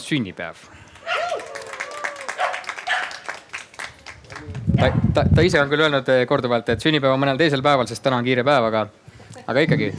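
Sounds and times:
speech: 0:00.1 - 0:00.9, 0:04.4 - 0:09.9
audience applause: 0:00.9 - 0:04.8.

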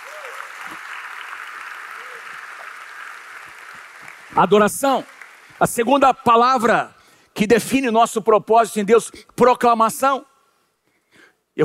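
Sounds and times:
audience applauding: 0:00.0 - 0:05.8
speech: 0:04.4 - 0:10.3.

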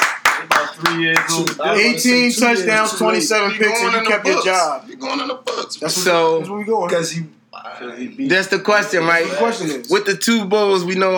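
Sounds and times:
hand claps: 0:00.0 - 0:01.6
speech: 0:00.8 - 0:11.1.

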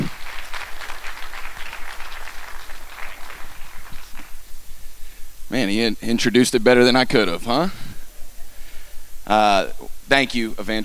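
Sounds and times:
church audience applause welcoming a Teen Challenge speaker: 0:00.0 - 0:04.5
speech: 0:05.5 - 0:07.9, 0:09.3 - 0:10.8.

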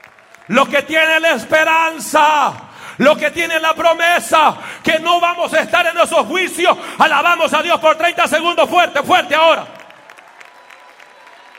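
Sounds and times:
audience applauding: 0:00.0 - 0:02.8, 0:09.1 - 0:11.5
speech: 0:00.5 - 0:09.8.

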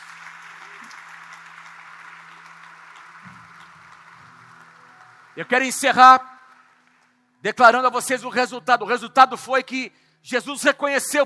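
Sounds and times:
audience applause: 0:00.0 - 0:07.1
speech: 0:05.4 - 0:06.3, 0:07.4 - 0:11.2.

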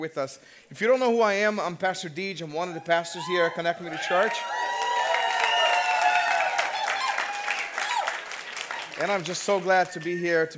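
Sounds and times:
speech: 0:00.0 - 0:04.8, 0:09.0 - 0:10.5
church congregation applause welcoming visitors: 0:03.9 - 0:10.3.

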